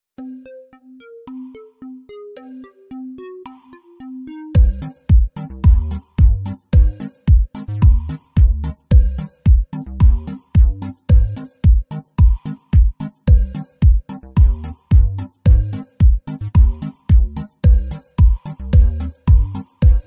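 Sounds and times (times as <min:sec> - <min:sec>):
boosted bass: 0:03.1 - 0:20.0.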